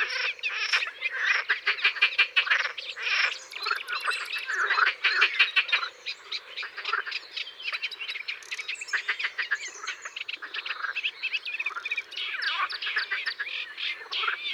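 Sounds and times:
edible frogs croaking in chorus: 0.0 - 14.5.

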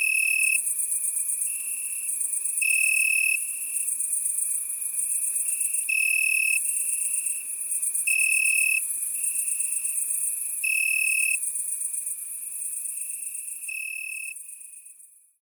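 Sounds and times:
cricket and grasshopper stridulating: 0.0 - 15.0.

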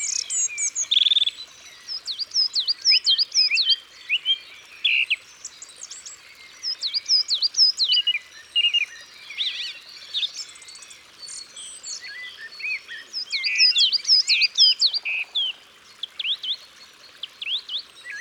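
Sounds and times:
song thrush singing in Isere: 0.0 - 18.1.

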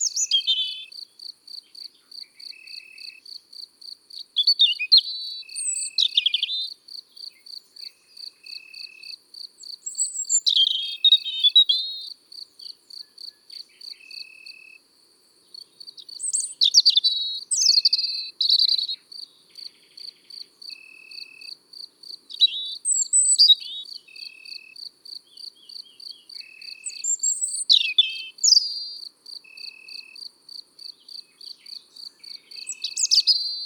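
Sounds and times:
European robin singing in the countryside: 0.0 - 1.0, 4.2 - 14.2, 15.9 - 20.3, 22.3 - 24.5, 25.3 - 29.0, 31.0 - 33.6.

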